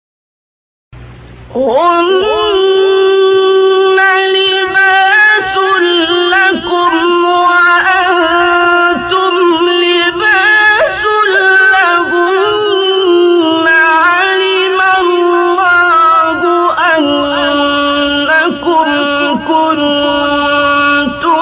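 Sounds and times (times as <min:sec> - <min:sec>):
Quran recitation of a verse: 0:01.5 - 0:21.4.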